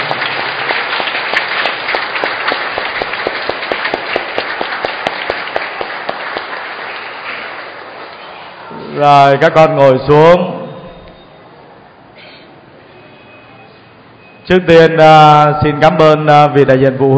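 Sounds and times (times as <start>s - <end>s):
audience applause: 0.0s - 8.9s
speech: 9.0s - 10.6s, 14.5s - 17.1s.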